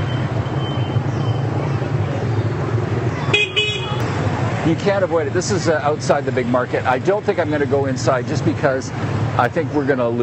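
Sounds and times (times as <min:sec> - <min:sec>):
busy street traffic in an old quarter: 0:00.0 - 0:10.2
voices murmuring: 0:00.0 - 0:10.2
short bright car horn toots: 0:03.3 - 0:04.0
speech: 0:04.7 - 0:10.2.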